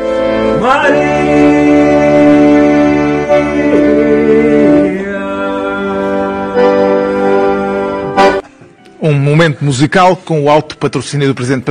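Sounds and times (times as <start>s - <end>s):
accordion playing a classical hymn melody: 0.0s - 8.6s
speech: 0.7s - 1.5s, 9.3s - 11.6s.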